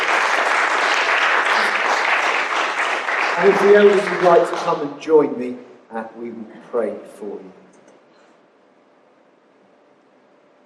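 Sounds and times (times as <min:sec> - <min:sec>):
round of applause: 0:00.0 - 0:05.0
speech: 0:03.4 - 0:07.6.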